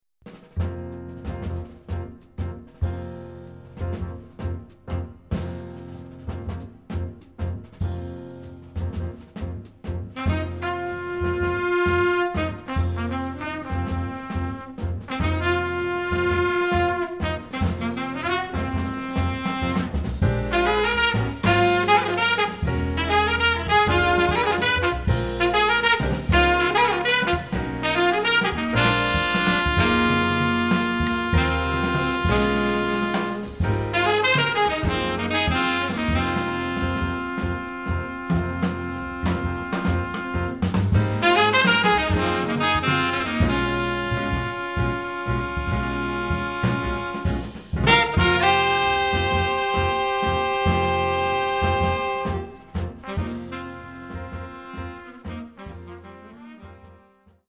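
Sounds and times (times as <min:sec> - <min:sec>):
back room blues music: 0:00.3 - 0:57.4.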